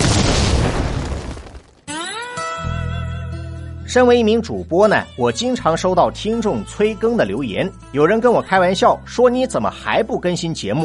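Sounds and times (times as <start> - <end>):
explosion sound effect: 0.0 - 1.9
speech: 3.9 - 10.8.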